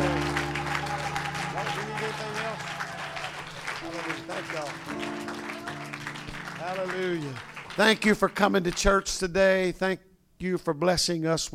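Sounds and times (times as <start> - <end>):
church congregation clapping along during a service: 0.0 - 9.2
speech: 6.8 - 11.5.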